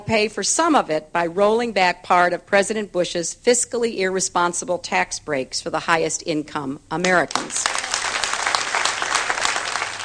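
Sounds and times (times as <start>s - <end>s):
speech: 0.1s - 8.0s
campaign staff applauding: 7.3s - 10.0s.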